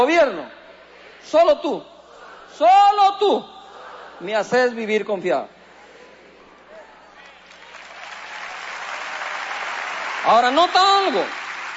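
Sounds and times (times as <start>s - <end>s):
speech: 0.0s - 0.6s, 1.2s - 1.9s, 2.6s - 3.6s, 4.2s - 5.6s, 10.2s - 11.4s
audience applause: 7.2s - 11.7s.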